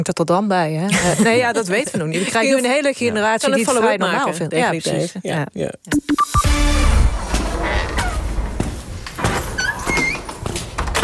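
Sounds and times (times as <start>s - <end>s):
speech: 0.0s - 7.0s
creaking door opening: 7.2s - 11.0s.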